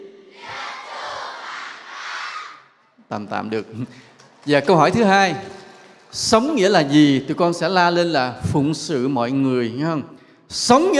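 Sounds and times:
group of children shouting in unison: 0:00.3 - 0:02.8
speech: 0:03.1 - 0:10.9.

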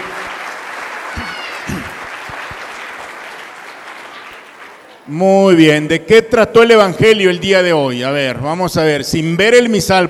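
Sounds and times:
audience applause: 0:00.0 - 0:05.1
speech: 0:05.1 - 0:10.0.

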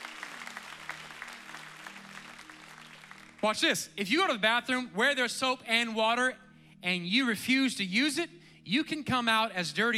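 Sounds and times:
audience clapping hands: 0:00.0 - 0:03.5
speech: 0:03.4 - 0:09.9.

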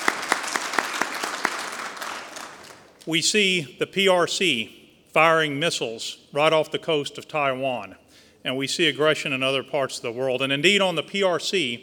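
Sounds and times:
audience applause: 0:00.0 - 0:02.9
speech: 0:03.1 - 0:11.8.

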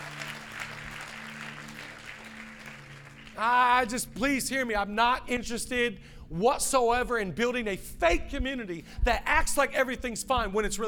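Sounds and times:
audience clapping and applauding: 0:00.0 - 0:04.3
speech: 0:03.4 - 0:10.8.

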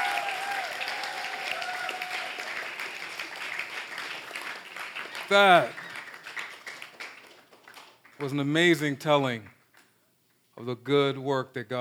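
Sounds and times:
round of applause: 0:00.0 - 0:08.4
speech: 0:05.3 - 0:05.8, 0:08.2 - 0:09.5, 0:10.6 - 0:11.7.

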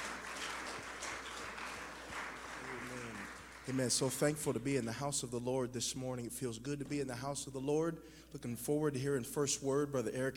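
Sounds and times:
audience hand clapping: 0:00.0 - 0:04.7
speech: 0:03.7 - 0:10.3.

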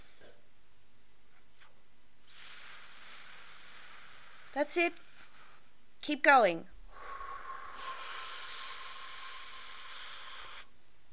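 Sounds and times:
person doing four-square breathing exercise: 0:02.3 - 0:05.8, 0:06.9 - 0:10.7
speech: 0:04.6 - 0:05.1, 0:06.0 - 0:06.7.

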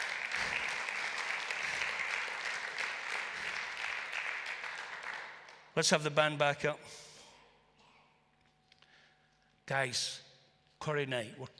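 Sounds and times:
large crowd applauding: 0:00.0 - 0:05.8
speech: 0:05.8 - 0:07.0, 0:09.7 - 0:10.2, 0:10.8 - 0:11.5.

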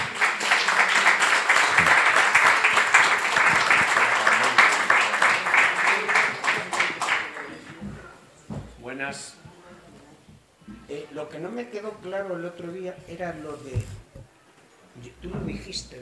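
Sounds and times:
audience applause: 0:00.0 - 0:07.7
speech: 0:11.6 - 0:14.0, 0:15.2 - 0:16.0.

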